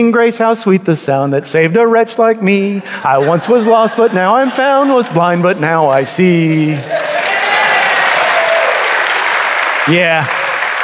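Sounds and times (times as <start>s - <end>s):
speech: 0.0s - 7.2s, 9.8s - 10.4s
laughter: 2.6s - 7.9s
audience applause: 5.8s - 10.8s.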